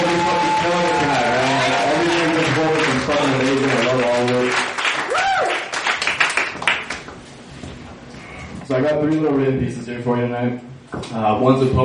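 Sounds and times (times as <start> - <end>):
crowd applause for performers: 0.0 - 7.1
speech: 8.8 - 11.8.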